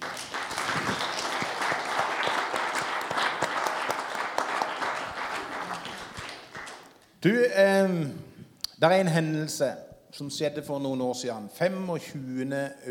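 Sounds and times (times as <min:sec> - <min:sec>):
audience applause: 0:00.0 - 0:07.0
speech: 0:07.2 - 0:12.9.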